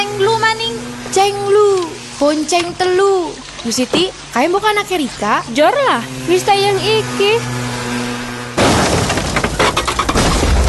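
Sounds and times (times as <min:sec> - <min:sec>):
steady low hum: 0:00.0 - 0:10.6
speech: 0:01.3 - 0:08.0
debris clattering, scraping and shattering: 0:08.6 - 0:10.6
motorcycle crash impact: 0:08.6 - 0:10.6.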